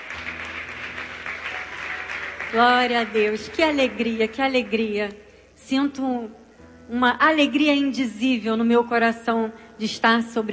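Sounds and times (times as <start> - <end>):
church congregation clapping for the Lord: 0.0 - 4.7
speech: 2.5 - 10.5.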